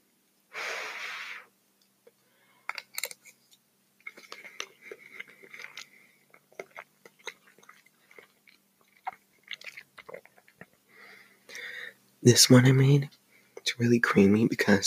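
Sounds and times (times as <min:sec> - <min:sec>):
wet chewing of food while eating: 0:02.7 - 0:10.9
speech: 0:12.2 - 0:13.2, 0:13.8 - 0:14.8.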